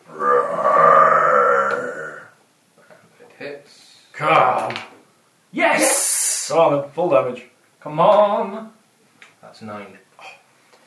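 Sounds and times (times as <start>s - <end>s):
person voicing a deep growling monster roar: 0.1s - 2.4s
speech: 6.6s - 8.7s, 9.6s - 10.1s.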